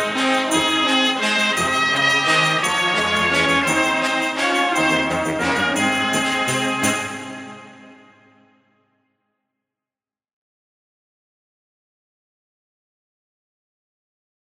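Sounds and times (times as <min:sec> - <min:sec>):
waltz music: 0:00.0 - 0:08.1.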